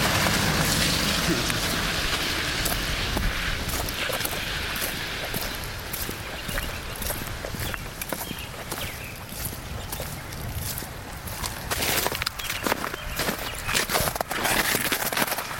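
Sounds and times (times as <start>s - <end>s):
footsteps crunching in snow: 0.2s - 15.5s
spring birds singing: 3.7s - 10.5s, 12.3s - 14.1s.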